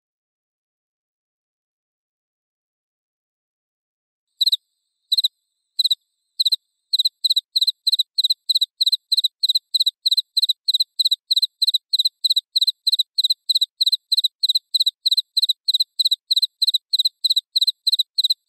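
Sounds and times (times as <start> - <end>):
cricket chirping: 4.4 - 18.4.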